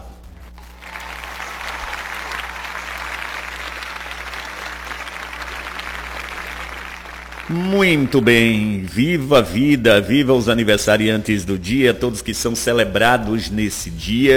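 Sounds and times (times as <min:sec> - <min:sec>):
audience applause: 0:00.6 - 0:08.7
speech: 0:07.5 - 0:14.3.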